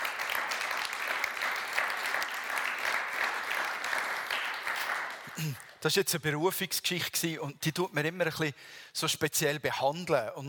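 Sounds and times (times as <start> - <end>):
group clapping: 0.0 - 5.9
speech: 5.4 - 10.4.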